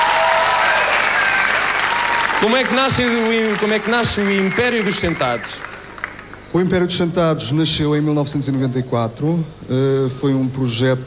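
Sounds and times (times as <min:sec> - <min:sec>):
audience applause: 0:00.0 - 0:06.4
speech: 0:02.4 - 0:05.7, 0:06.5 - 0:11.0.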